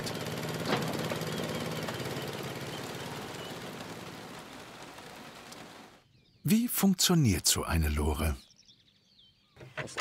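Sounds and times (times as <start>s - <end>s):
Honda stationary engine with centrifugal clutch running: 0.0s - 5.9s
speech: 6.4s - 8.5s.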